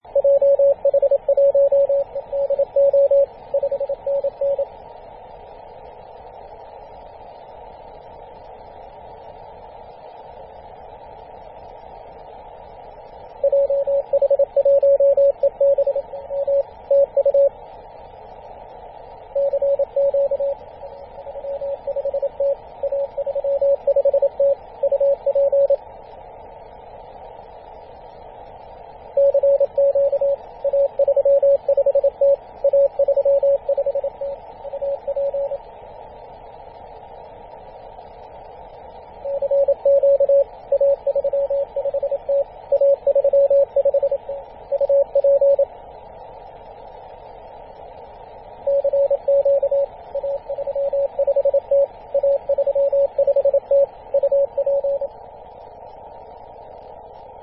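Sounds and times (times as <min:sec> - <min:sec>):
CW morse code on 24.898MHz: 0:00.2 - 0:04.6, 0:13.4 - 0:17.5, 0:19.4 - 0:20.6, 0:21.4 - 0:25.8, 0:29.2 - 0:35.6, 0:39.3 - 0:45.6, 0:48.7 - 0:55.1.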